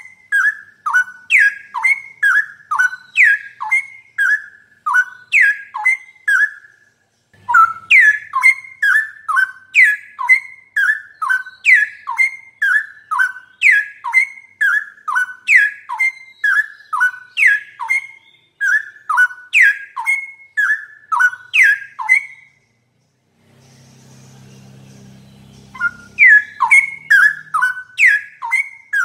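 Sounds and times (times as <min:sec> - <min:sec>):
straw-headed bulbul song: 0:00.0 - 0:29.0.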